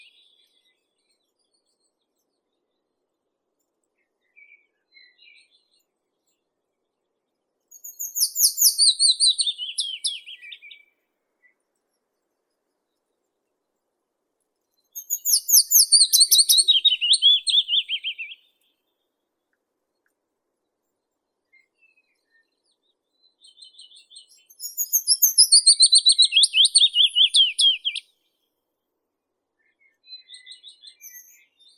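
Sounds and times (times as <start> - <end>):
Phylloscopus trochilus willow warbler singing: 7.7 - 10.8, 15.0 - 18.4, 23.5 - 28.0.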